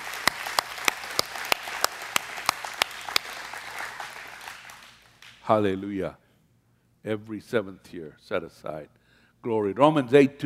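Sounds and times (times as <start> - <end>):
audience clapping: 0.0 - 5.5
speech: 5.5 - 6.2, 7.0 - 10.4.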